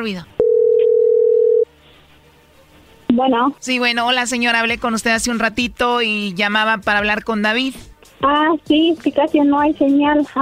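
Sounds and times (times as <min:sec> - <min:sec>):
speech: 0:00.0 - 0:00.3, 0:03.2 - 0:10.3
single-pitched telephone tone: 0:00.4 - 0:01.7.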